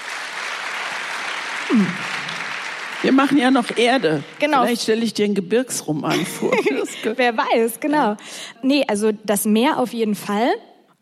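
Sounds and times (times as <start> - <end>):
audience clapping: 0.0 - 5.1
speech: 1.7 - 2.1, 3.0 - 11.0.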